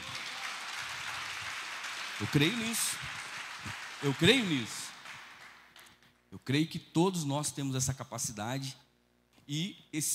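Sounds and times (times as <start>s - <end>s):
crowd applauding: 0.0s - 6.0s
speech: 2.2s - 4.8s, 6.4s - 8.8s, 9.5s - 10.1s.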